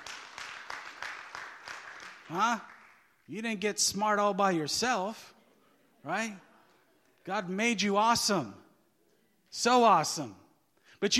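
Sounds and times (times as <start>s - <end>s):
audience clapping: 0.0s - 3.3s
speech: 2.3s - 2.7s, 3.3s - 5.4s, 6.0s - 6.5s, 7.2s - 8.6s, 9.5s - 10.4s, 11.0s - 11.1s.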